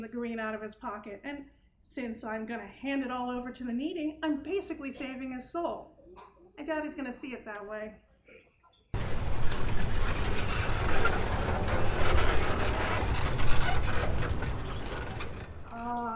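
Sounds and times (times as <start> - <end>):
speech: 0.0 - 8.0, 15.8 - 16.1
chain link fence being torn apart: 9.0 - 16.1.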